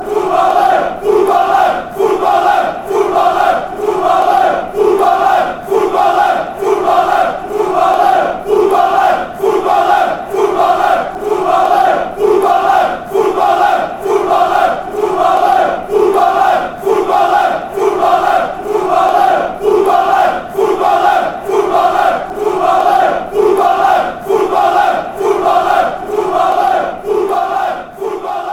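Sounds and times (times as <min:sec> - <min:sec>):
football fans chanting: 0:00.0 - 0:28.5.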